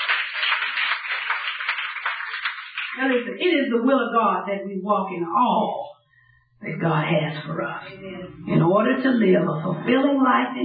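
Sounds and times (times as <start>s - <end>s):
audience clapping hands: 0.0s - 3.2s
speech: 2.9s - 5.9s, 6.6s - 10.6s.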